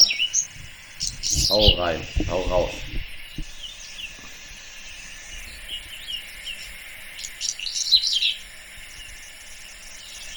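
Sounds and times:
whinchat singing: 0.0s - 8.4s
speech: 1.5s - 2.9s.

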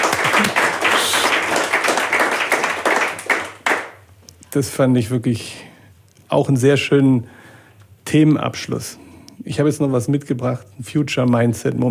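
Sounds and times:
group applauding: 0.0s - 4.1s
speech: 4.5s - 5.6s, 6.3s - 7.4s, 8.1s - 11.8s.

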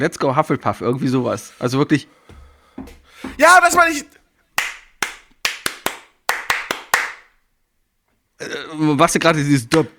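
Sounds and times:
speech: 0.0s - 2.2s, 2.8s - 4.2s, 8.4s - 9.9s
hands clapping a rhythm: 3.3s - 4.0s, 4.6s - 7.3s.

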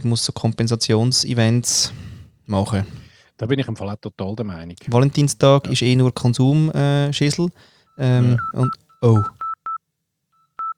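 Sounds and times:
speech: 0.0s - 9.4s
voice-like tone: 4.8s - 9.4s
phone dialing beeps of incoming call: 7.2s - 9.8s, 10.4s - 10.7s.

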